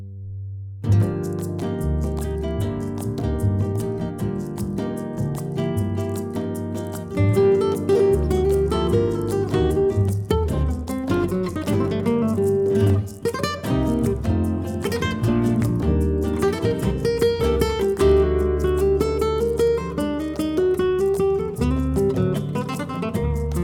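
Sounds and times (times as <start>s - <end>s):
flamenco rumba music: 0.8s - 23.6s.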